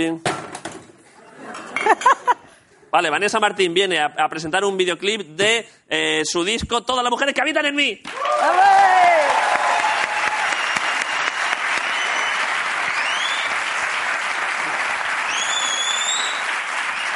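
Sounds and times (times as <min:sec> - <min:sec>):
speech: 0:00.0 - 0:00.4, 0:02.9 - 0:08.8
whoops and cheers: 0:08.1 - 0:13.6, 0:15.3 - 0:17.1
large audience applause: 0:08.1 - 0:17.1.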